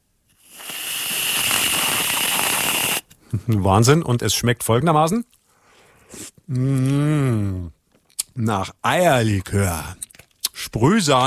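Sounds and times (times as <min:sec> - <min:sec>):
whipped cream spraying from an aerosol can: 0:00.4 - 0:03.0
speech: 0:03.3 - 0:05.3, 0:06.5 - 0:07.8, 0:08.4 - 0:10.0, 0:10.8 - 0:11.2.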